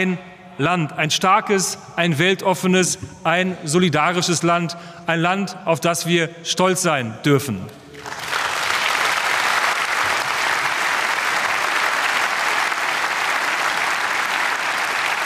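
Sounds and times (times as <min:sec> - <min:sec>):
speech: 0:00.0 - 0:07.8
audience applause after a speech: 0:07.9 - 0:15.2.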